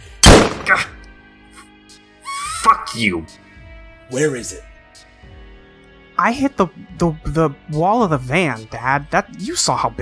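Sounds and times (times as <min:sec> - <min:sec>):
gunshot: 0:00.1 - 0:01.0
speech: 0:00.7 - 0:01.0, 0:02.9 - 0:03.4, 0:04.1 - 0:04.7, 0:06.2 - 0:10.0.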